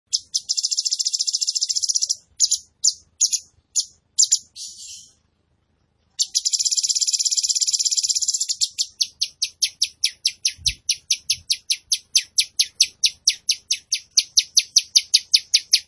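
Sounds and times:
Tembakan bird singing vigorously: 0.1s - 5.2s, 6.2s - 15.8s.

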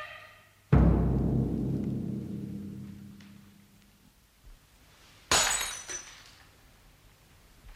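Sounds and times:
heavy crash: 0.7s - 3.6s
long low rumble: 0.7s - 3.6s
glass dropped by a man shattering: 5.3s - 6.4s.

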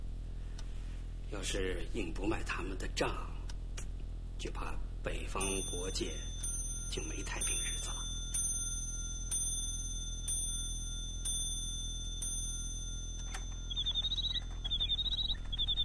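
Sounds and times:
low steady hum: 0.0s - 15.8s
speech: 1.3s - 3.4s, 4.4s - 6.3s, 6.9s - 8.0s
bird-call clock chiming: 5.4s - 15.8s
bird-call clock high warbling chirps: 5.4s - 15.8s.

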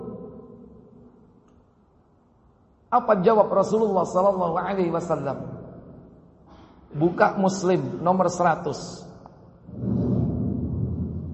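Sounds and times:
speech: 2.9s - 5.5s, 6.9s - 9.1s
thunder: 9.7s - 11.3s.

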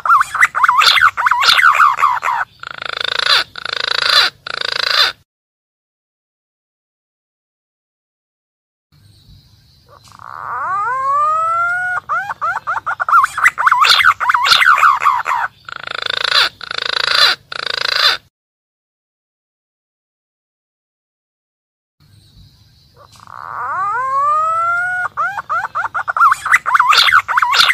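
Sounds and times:
green pigeon calling, used as a lure for wild birds: 0.0s - 5.2s, 9.8s - 18.3s, 22.9s - 27.7s.

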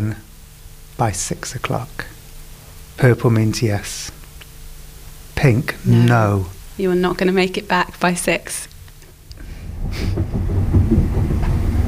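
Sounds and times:
speech: 0.0s - 0.3s, 1.0s - 2.2s, 3.0s - 4.2s, 5.4s - 8.7s
train pulling into London Paddington station: 9.7s - 11.8s.

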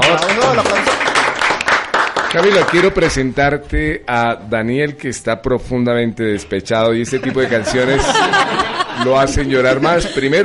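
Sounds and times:
applause: 0.0s - 3.2s
speech: 2.3s - 10.4s
laughter: 7.1s - 10.4s.

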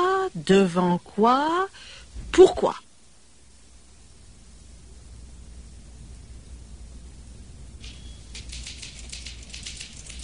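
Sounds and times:
steady hiss of noise: 0.0s - 10.2s
speech: 0.4s - 2.8s
woman typing on a typewriter: 7.8s - 10.2s.

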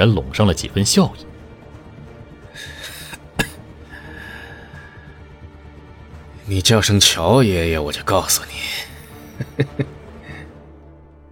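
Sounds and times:
speech: 0.0s - 1.3s, 6.5s - 9.9s
laughter: 2.6s - 3.6s, 9.2s - 10.5s
soft light coughs: 3.0s - 3.6s.

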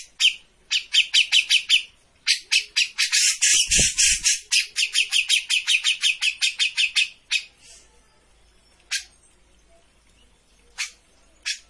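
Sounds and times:
Grey-cheeked bulbul chattering: 0.0s - 7.8s, 10.6s - 11.6s.

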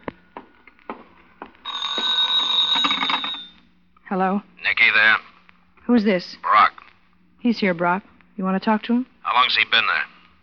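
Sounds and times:
telephone bell ringing: 1.6s - 3.5s
speech: 4.1s - 5.3s, 5.9s - 6.7s, 7.4s - 10.1s.

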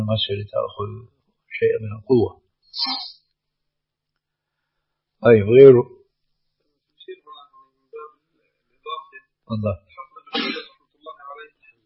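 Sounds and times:
speech: 0.1s - 3.2s, 5.2s - 6.0s, 9.5s - 10.6s
sneeze: 10.3s - 10.7s.

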